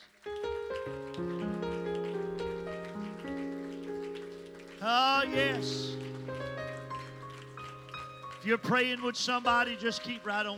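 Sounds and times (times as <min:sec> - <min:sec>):
audience clapping hands: 0:00.0 - 0:10.5
sustained organ-like chords: 0:00.3 - 0:10.5
speech: 0:04.8 - 0:06.0, 0:08.4 - 0:10.5.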